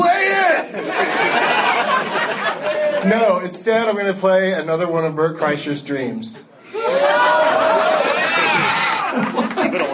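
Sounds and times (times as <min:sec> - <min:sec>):
crowd laughter: 0:00.7 - 0:03.1, 0:07.1 - 0:09.9
speech: 0:03.0 - 0:07.1.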